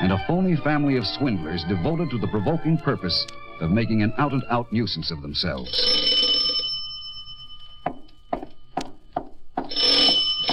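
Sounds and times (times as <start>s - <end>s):
speech: 0.2s - 6.2s
shrill doorbell ringing at the front door: 5.6s - 8.6s, 9.6s - 10.5s.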